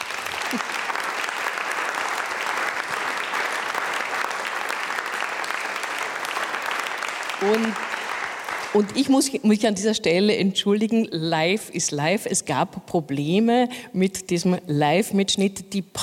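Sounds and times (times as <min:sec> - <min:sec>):
audience applause: 0:00.0 - 0:09.1
speech: 0:00.5 - 0:00.8, 0:07.4 - 0:07.9, 0:08.7 - 0:16.0.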